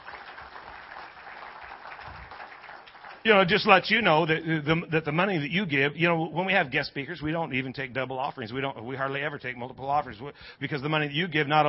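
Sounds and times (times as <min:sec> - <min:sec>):
audience clapping: 0:00.0 - 0:04.0
speech: 0:03.2 - 0:11.6.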